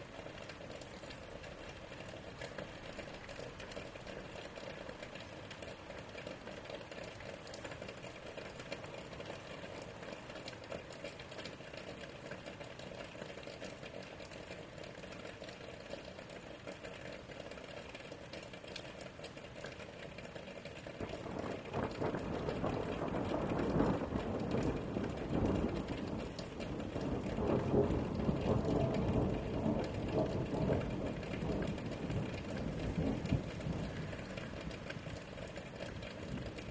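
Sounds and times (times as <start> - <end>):
rain: 0.0 - 36.6
thunder: 21.0 - 34.9.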